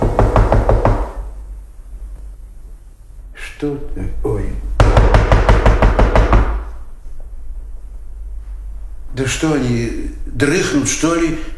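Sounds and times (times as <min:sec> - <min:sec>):
firm knocking on a wooden door: 0:00.0 - 0:01.2, 0:04.8 - 0:06.7
speech: 0:03.6 - 0:04.8, 0:09.2 - 0:11.5.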